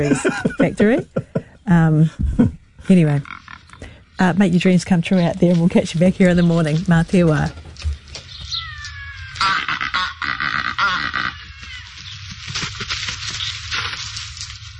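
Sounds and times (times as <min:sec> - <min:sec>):
laughter: 0:00.0 - 0:01.5
speech: 0:00.0 - 0:03.4, 0:04.2 - 0:07.6
Cape Barren goose call: 0:09.3 - 0:11.7.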